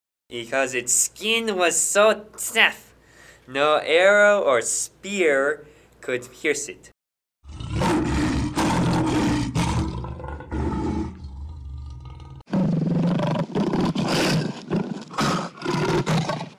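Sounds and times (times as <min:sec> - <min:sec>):
speech: 0:00.3 - 0:02.9, 0:03.5 - 0:06.9
lion roaring: 0:07.4 - 0:16.5.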